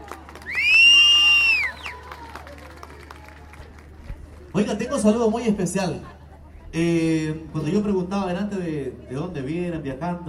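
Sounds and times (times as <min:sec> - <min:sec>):
audience applause: 0:00.0 - 0:04.6
speech: 0:04.6 - 0:10.2.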